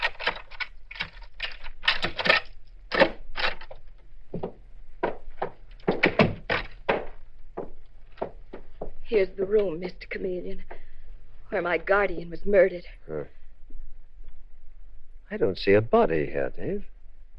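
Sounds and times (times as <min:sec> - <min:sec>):
door being unlocked and opened: 0:00.0 - 0:03.8, 0:05.5 - 0:07.1
speech: 0:09.1 - 0:10.7, 0:11.5 - 0:13.4, 0:15.3 - 0:16.9.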